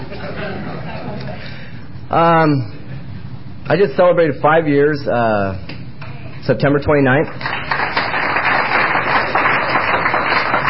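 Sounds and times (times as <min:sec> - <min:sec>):
speech: 0:00.4 - 0:01.0, 0:02.1 - 0:02.8, 0:03.7 - 0:05.7, 0:06.4 - 0:07.5
audience applause: 0:07.3 - 0:10.6.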